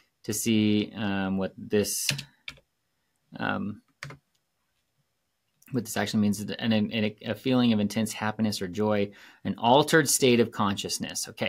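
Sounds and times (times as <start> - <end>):
speech: 0.2 - 2.4, 3.3 - 4.2, 5.7 - 11.4
computer keyboard typing a search into Google: 2.1 - 2.6, 3.9 - 4.2.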